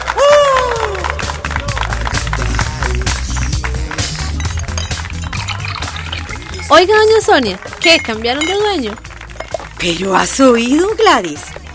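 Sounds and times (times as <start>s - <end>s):
applause: 0.0s - 11.7s
speech: 6.7s - 9.1s, 9.8s - 11.6s.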